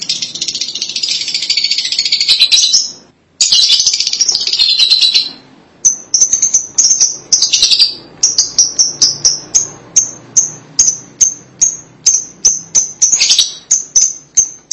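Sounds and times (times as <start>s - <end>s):
Lovebird chirping: 0.0s - 14.7s.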